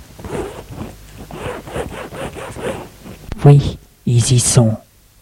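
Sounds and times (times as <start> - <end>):
suitcase zipper pulled open: 0.1 - 3.3
speech: 3.4 - 4.8.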